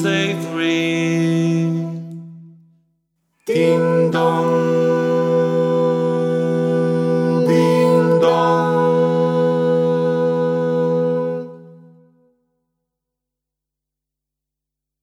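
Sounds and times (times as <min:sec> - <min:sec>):
a cappella carol singing: 0:00.0 - 0:02.5, 0:03.5 - 0:12.2.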